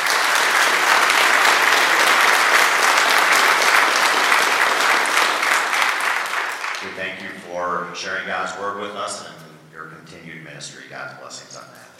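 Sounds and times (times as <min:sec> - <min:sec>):
church congregation clapping for a visiting pastor and choir: 0:00.0 - 0:07.4
speech: 0:08.0 - 0:11.9.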